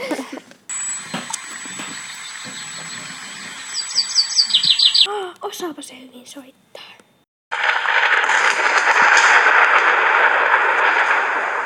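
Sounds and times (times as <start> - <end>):
thunder clap: 0.7 - 5.1, 7.5 - 11.6
speech: 5.1 - 6.8.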